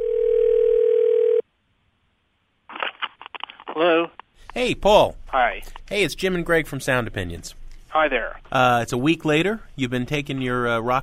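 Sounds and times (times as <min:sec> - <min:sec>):
steady electronic telephone tone: 0:00.0 - 0:01.4
speech: 0:04.6 - 0:11.0.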